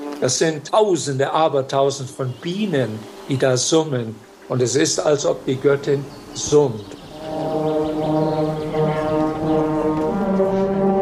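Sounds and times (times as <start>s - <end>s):
hunting horns warming up: 0.0s - 11.0s
speech: 0.2s - 7.0s.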